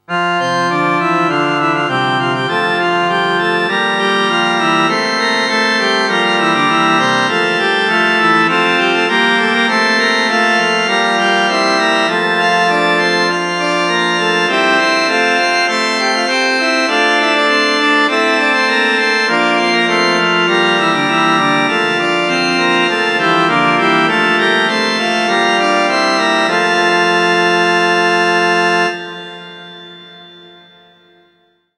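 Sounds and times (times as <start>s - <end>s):
organ playing a hymn: 0.0s - 31.5s.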